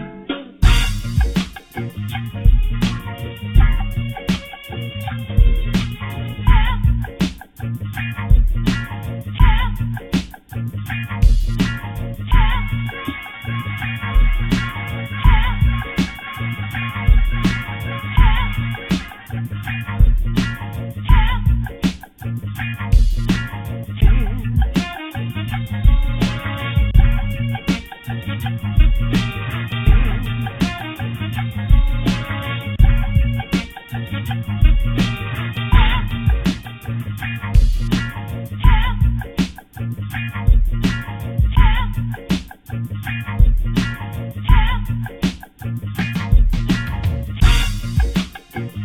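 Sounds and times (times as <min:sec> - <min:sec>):
music beat: 0:00.6 - 0:48.8.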